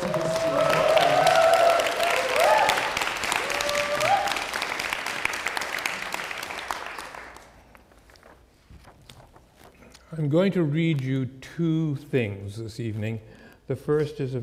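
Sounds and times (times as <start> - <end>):
whoops and cheers: 0.0 - 4.6
crowd applause: 0.0 - 7.6
speech: 10.3 - 14.4.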